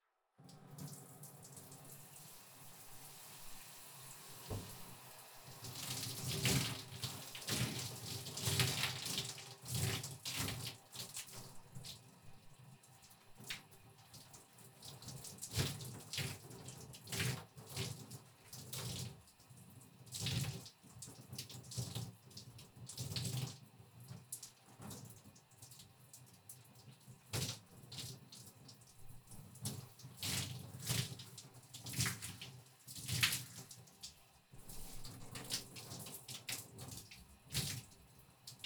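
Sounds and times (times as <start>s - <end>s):
shower water rinsing body: 0.7s - 38.6s.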